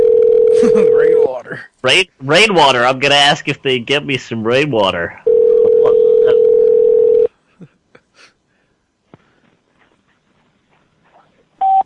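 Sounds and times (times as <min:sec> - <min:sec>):
telephone dial tone: 0:00.0 - 0:01.2, 0:05.3 - 0:07.3
speech: 0:00.6 - 0:05.4.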